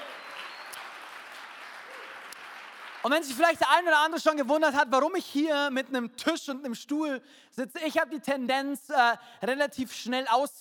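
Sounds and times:
audience applause: 0:00.0 - 0:03.4
speech: 0:03.0 - 0:10.5.

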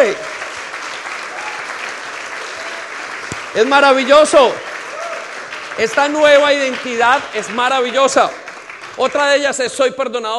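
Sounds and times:
audience applauding: 0:00.0 - 0:09.8
speech: 0:03.6 - 0:04.7, 0:05.8 - 0:08.4, 0:09.0 - 0:10.3.

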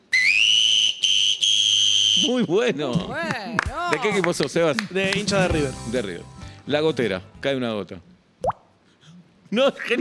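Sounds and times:
person imitating a referee's final match whistle: 0:00.0 - 0:02.3
speech: 0:02.2 - 0:08.5, 0:09.5 - 0:09.9.

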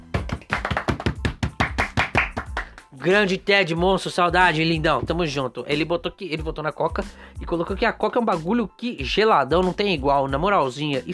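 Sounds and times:
quick steady hand clapping: 0:00.0 - 0:03.0
speech: 0:03.0 - 0:11.1.

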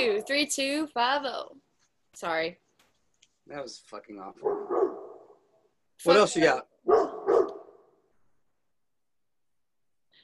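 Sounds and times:
speech: 0:00.0 - 0:02.6, 0:03.5 - 0:04.8, 0:06.0 - 0:07.5
dog barking: 0:04.4 - 0:05.4, 0:06.8 - 0:07.8.

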